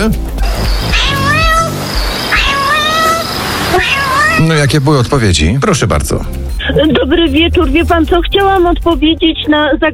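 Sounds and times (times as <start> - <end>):
speech: 0.0 - 1.3, 3.8 - 9.9
domestic cat meowing: 0.8 - 4.6.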